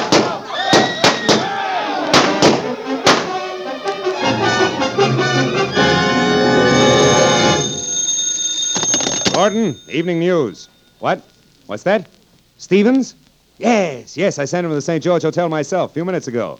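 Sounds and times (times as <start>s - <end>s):
gunshot sound effects in a radio drama: 0.0s - 3.5s
sustained tonal swell of music: 2.7s - 8.0s
speech: 9.5s - 16.5s.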